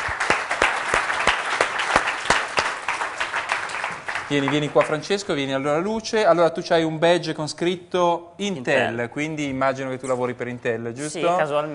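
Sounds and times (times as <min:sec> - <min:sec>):
audience applause: 0:00.0 - 0:05.3
speech: 0:04.3 - 0:11.7.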